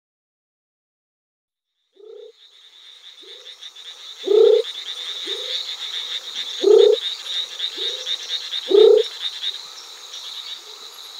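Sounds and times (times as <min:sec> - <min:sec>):
Knudsen's thin-toed frog calling: 0:01.9 - 0:10.6.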